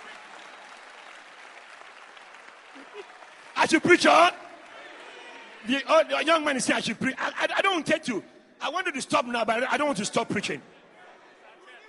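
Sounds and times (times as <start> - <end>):
audience clapping: 0.0 - 5.5
speech: 2.8 - 4.4, 5.6 - 10.7.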